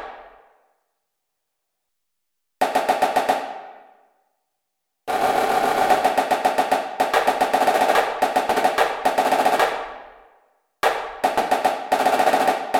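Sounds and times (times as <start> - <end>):
snare drum: 2.6 - 3.8, 5.1 - 10.1, 10.8 - 12.7.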